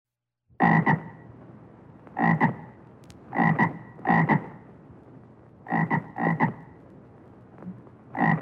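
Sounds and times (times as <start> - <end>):
bullfrog croaking in quick double pulses: 0.6 - 1.2, 2.2 - 4.6, 5.6 - 6.8, 8.1 - 8.3.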